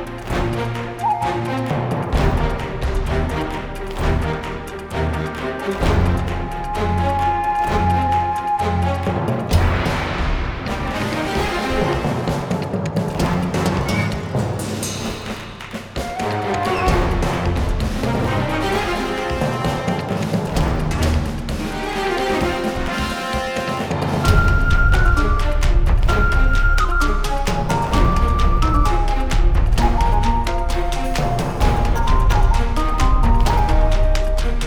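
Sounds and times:
flank drums in full battle: 0.0s - 34.6s.

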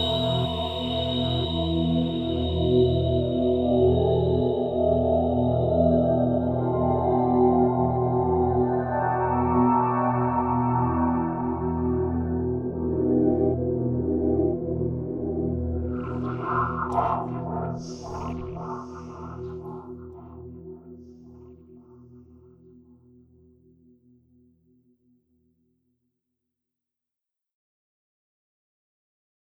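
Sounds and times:
horror music: 0.0s - 22.2s.

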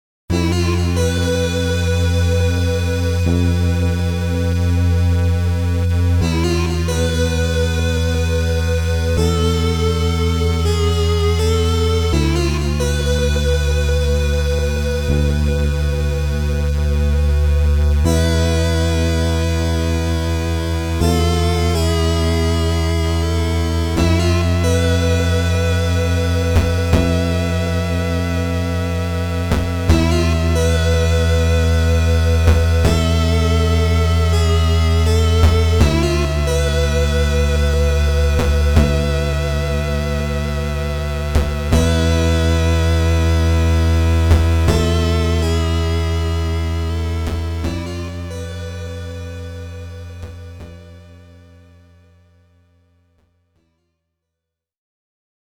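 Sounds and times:
mellow victory music: 0.3s - 51.2s.

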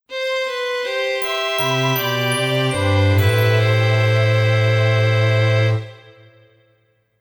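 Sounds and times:
emotional jingle: 1.2s - 6.8s.

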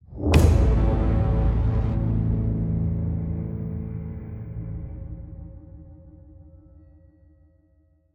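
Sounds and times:
shock stinger: 0.4s - 5.6s.

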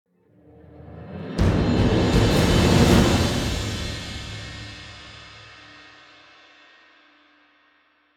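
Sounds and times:
general combat music transition: 1.4s - 5.2s.

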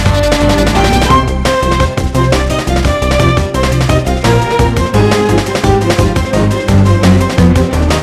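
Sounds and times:
music loop: 0.0s - 8.0s.

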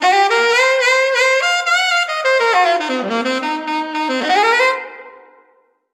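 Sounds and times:
opening solo instrument: 0.0s - 5.7s.

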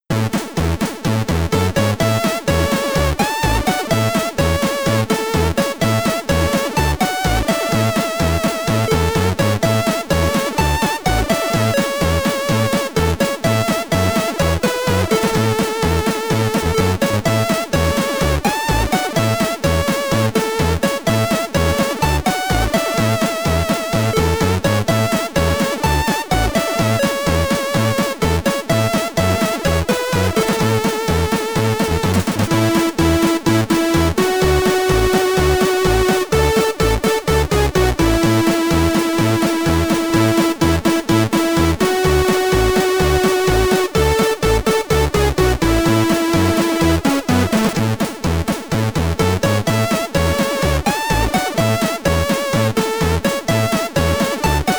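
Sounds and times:
Commodore 64 SID chiptune music in stereo: 0.1s - 54.7s.

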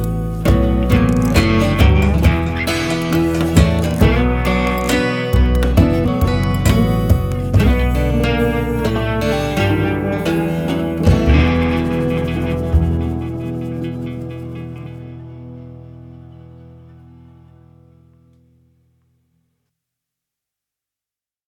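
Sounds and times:
market ambience: 0.0s - 16.9s.

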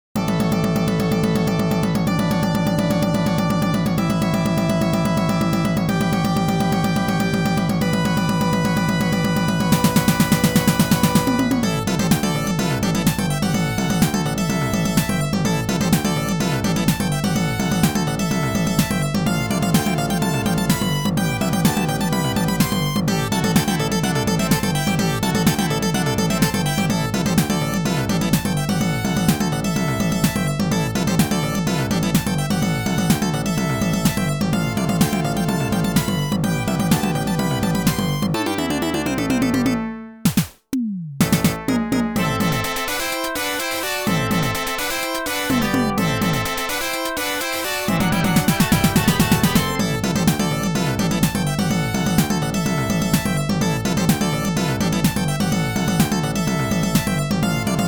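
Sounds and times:
waterfall stage game background music: 0.0s - 57.8s.

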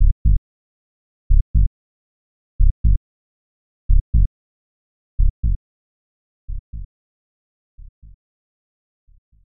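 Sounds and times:
heartbeat: 0.0s - 0.4s, 1.3s - 1.7s, 2.6s - 3.0s, 3.9s - 4.3s, 5.2s - 5.6s, 6.5s - 6.9s, 7.8s - 8.2s.

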